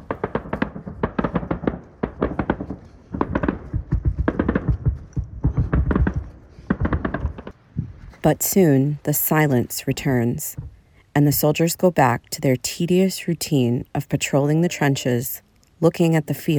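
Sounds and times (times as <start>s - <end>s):
gunfire exchanged between soldiers in a trench and Russian soldiers: 0.0s - 7.6s
speech: 8.2s - 16.5s.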